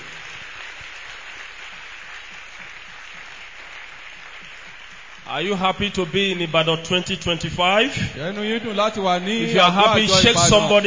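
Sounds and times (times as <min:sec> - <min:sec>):
audience clapping: 0:00.0 - 0:07.1
speech: 0:05.3 - 0:10.8.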